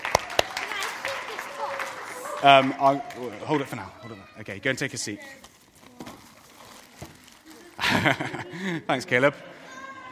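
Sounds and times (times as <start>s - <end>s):
audience applause: 0.0s - 4.2s
speech: 2.4s - 5.5s, 8.0s - 10.1s
laughter: 7.6s - 10.1s.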